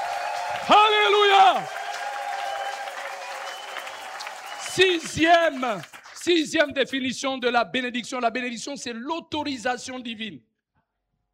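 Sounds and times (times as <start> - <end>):
church congregation applauding and acclaiming Jesus: 0.0 - 6.9
speech: 0.6 - 1.8, 4.8 - 10.5.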